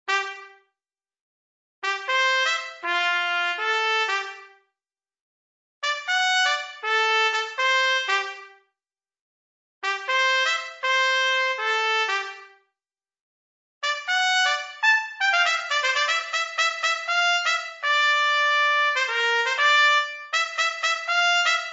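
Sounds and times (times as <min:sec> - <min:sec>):
trumpet: 0:00.1 - 0:00.6, 0:01.8 - 0:04.6, 0:05.8 - 0:08.6, 0:09.8 - 0:12.6, 0:13.8 - 0:21.7.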